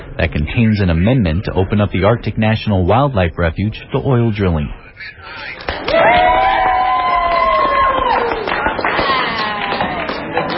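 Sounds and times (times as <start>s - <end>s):
speech: 0.2s - 6.4s
people clapping: 5.6s - 10.5s
crowd of lobbyists cheering and celebrating: 5.7s - 10.5s.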